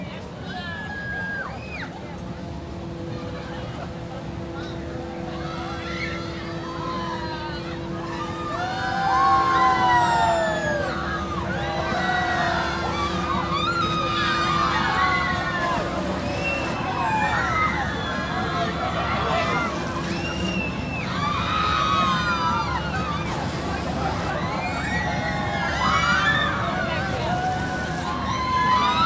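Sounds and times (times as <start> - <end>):
exterior fairground ambience with people: 0.0 - 29.0.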